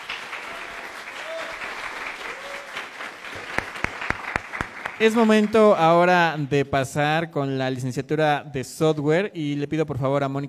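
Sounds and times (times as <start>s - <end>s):
loud applause: 0.0s - 6.0s
speech: 5.0s - 10.4s.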